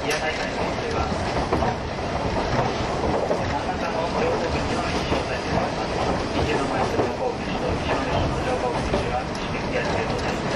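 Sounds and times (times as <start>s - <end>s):
old-style local passenger train hauled by an E10 locomotive with vintage coaches: 0.0s - 10.5s.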